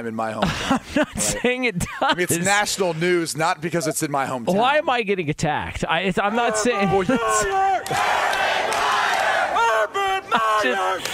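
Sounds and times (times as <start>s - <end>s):
speech: 0.0s - 9.0s, 9.8s - 11.1s
laughter: 0.3s - 2.9s, 6.2s - 8.2s, 8.8s - 11.1s
man yelling to hype up audience: 6.2s - 7.9s, 9.5s - 11.1s
crowd roar: 6.3s - 11.1s.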